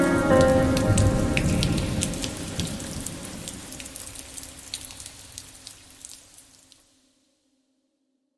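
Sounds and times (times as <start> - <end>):
piano music: 0.0 - 4.6.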